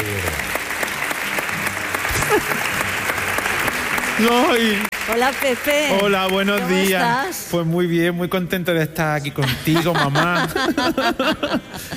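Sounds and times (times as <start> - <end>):
audience applause: 0.0 - 7.4
laughter: 2.0 - 3.0, 9.3 - 11.9
speech: 2.3 - 2.6, 4.2 - 11.9.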